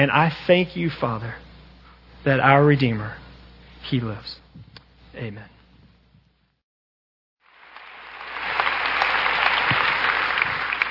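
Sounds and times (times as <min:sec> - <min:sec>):
speech: 0:00.0 - 0:01.4, 0:02.2 - 0:03.2, 0:03.8 - 0:04.4, 0:05.2 - 0:05.5
audience clapping: 0:07.4 - 0:10.8.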